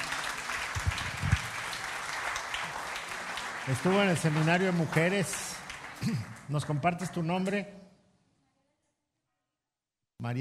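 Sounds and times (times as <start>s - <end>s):
welcoming applause: 0.0s - 7.6s
speech: 3.7s - 7.8s.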